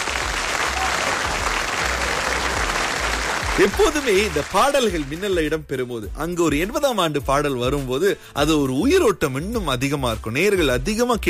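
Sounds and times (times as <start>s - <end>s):
audience applause for the musicians: 0.0s - 5.2s
speech: 3.6s - 11.2s.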